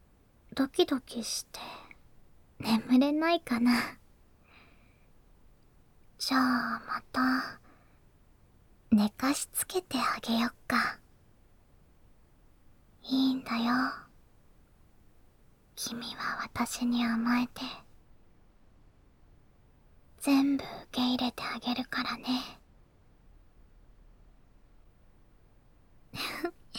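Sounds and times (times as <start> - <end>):
ASMR whispering: 0.6 - 2.0, 2.6 - 4.0, 6.2 - 7.7, 8.9 - 11.0, 13.0 - 14.1, 15.8 - 17.9, 20.2 - 22.6, 26.2 - 26.7.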